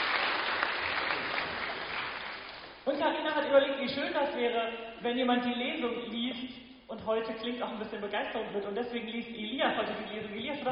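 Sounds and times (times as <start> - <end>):
audience applause: 0.0 - 2.8
speech: 3.0 - 10.6.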